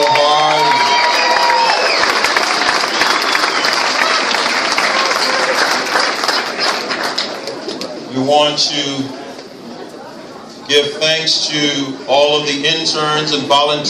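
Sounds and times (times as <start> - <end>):
audience applause: 0.0 - 7.9
speech: 8.5 - 9.2, 10.7 - 13.8.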